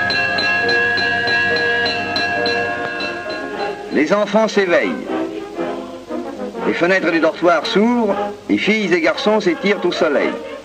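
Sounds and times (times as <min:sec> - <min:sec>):
wake-up bell being rung: 0:00.0 - 0:04.7
speech: 0:03.9 - 0:05.1, 0:06.6 - 0:10.6.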